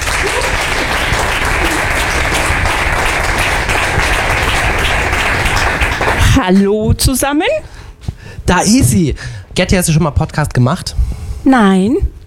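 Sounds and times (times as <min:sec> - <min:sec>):
crowd applause: 0:00.0 - 0:06.5
speech: 0:06.4 - 0:07.7, 0:08.5 - 0:12.2.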